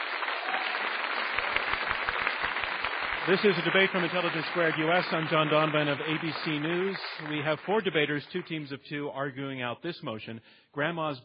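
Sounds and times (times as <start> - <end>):
audience applause: 0.0 - 8.6
speech: 3.2 - 11.2.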